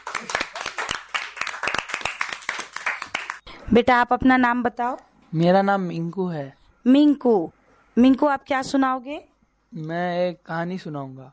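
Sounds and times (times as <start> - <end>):
children clapping: 0.0 - 3.4
speech: 3.7 - 11.3.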